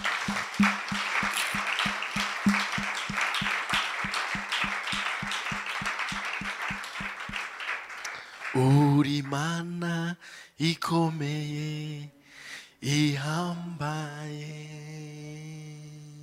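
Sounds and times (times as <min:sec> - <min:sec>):
crowd noise: 0:00.0 - 0:07.6
church congregation clapping: 0:00.0 - 0:09.5
speech: 0:08.6 - 0:12.2, 0:12.8 - 0:15.2.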